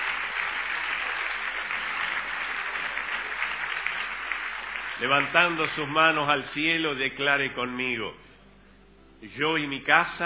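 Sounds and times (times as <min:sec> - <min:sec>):
applause: 0:00.0 - 0:06.3
speech: 0:05.0 - 0:08.2, 0:09.2 - 0:10.2.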